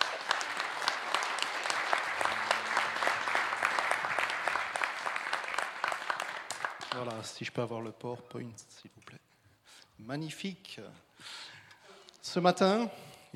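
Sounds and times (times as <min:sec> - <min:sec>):
audience applauding: 0:00.0 - 0:07.4
speech: 0:07.0 - 0:09.2, 0:10.0 - 0:11.5, 0:12.2 - 0:13.3.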